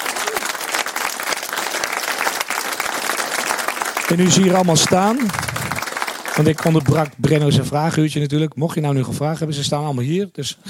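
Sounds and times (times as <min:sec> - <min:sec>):
loud audience applause: 0:00.0 - 0:07.2
speech: 0:04.1 - 0:05.6, 0:06.4 - 0:10.6.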